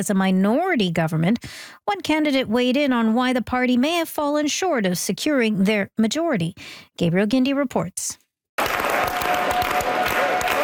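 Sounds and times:
speech: 0.0s - 8.7s
crowd clapping at a Parti Québécois election-night rally: 8.6s - 10.6s.

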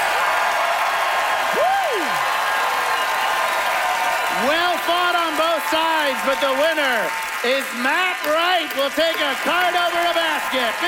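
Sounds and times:
crowd applause: 0.0s - 10.8s
person whooping: 1.5s - 2.4s
speech: 4.4s - 10.8s.

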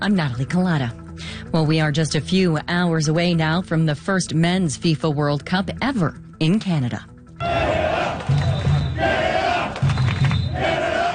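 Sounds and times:
speech: 0.0s - 7.7s
crowd of marching football fans chanting: 7.4s - 11.1s.

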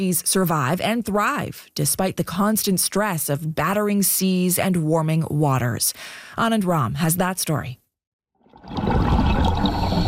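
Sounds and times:
speech: 0.0s - 7.8s
scuba diver breathing underwater: 9.1s - 10.0s.

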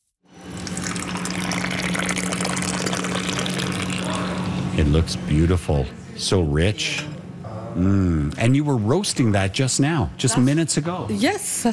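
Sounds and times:
coffee pouring into a cup: 0.4s - 4.5s
speech: 4.8s - 11.7s.

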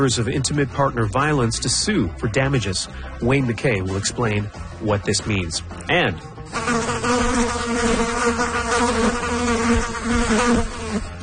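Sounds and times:
speech: 0.0s - 8.5s
black flies buzzing in a spring swarm: 6.4s - 11.2s.

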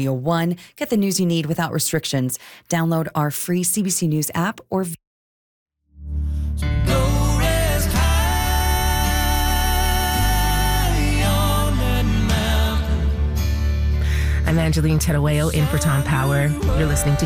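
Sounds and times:
speech: 0.0s - 5.0s, 14.5s - 17.2s
slow country song from a 1994 album: 6.1s - 17.2s.

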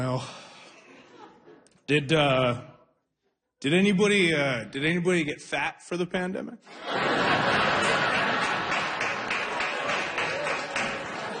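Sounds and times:
speech: 0.0s - 0.4s, 1.9s - 2.7s, 3.6s - 8.2s
laughter: 0.5s - 1.8s, 6.6s - 11.3s
audience clapping: 7.1s - 11.3s.

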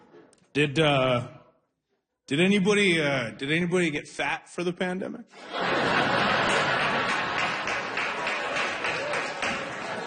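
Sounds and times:
speech: 0.5s - 1.4s, 2.3s - 6.8s
laughter: 5.3s - 10.0s
enthusiastic audience clapping: 6.4s - 10.0s.

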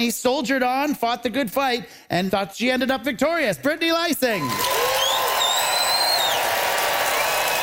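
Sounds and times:
speech: 0.0s - 5.0s
high whistles: 4.4s - 6.5s
audience applause: 4.4s - 7.6s.

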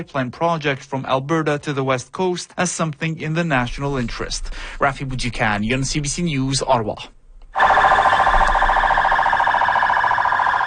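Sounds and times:
speech: 0.0s - 7.2s
sirens blaring on a military and police convoy in Baghdad: 7.6s - 10.6s.

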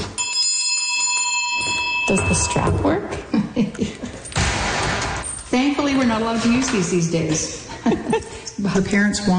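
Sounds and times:
old school classroom bell ringing: 0.2s - 3.1s
speech: 2.1s - 4.1s, 5.5s - 9.3s.

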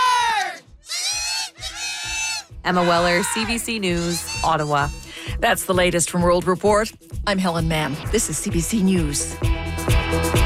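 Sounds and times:
noisy hockey arena crowd roaring: 0.0s - 0.6s, 2.7s - 3.8s
speech: 2.6s - 10.3s.

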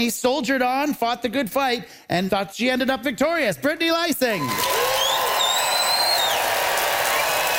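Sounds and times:
speech: 0.0s - 4.9s
audience applause vote: 4.4s - 7.5s.

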